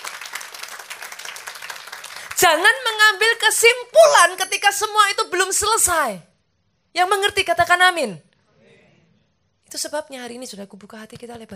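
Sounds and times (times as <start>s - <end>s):
audience applause: 0.0s - 2.4s
speech: 2.4s - 6.3s, 6.9s - 8.3s, 9.7s - 11.5s.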